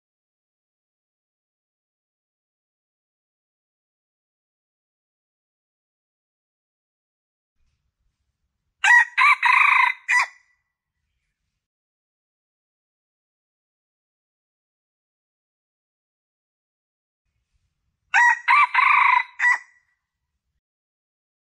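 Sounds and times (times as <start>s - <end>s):
Red junglefowl crowing: 8.8s - 10.4s, 18.1s - 19.8s.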